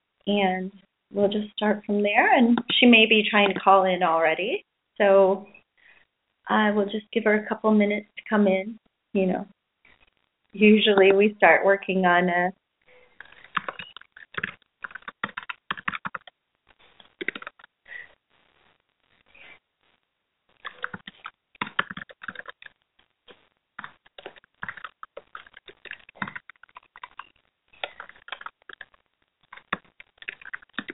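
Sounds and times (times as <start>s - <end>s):
speech: 0.2s - 5.6s, 6.5s - 9.6s, 10.5s - 12.6s
typing on a computer keyboard: 13.2s - 16.4s, 17.2s - 17.7s, 20.6s - 22.8s, 23.8s - 28.9s, 29.5s - 30.9s.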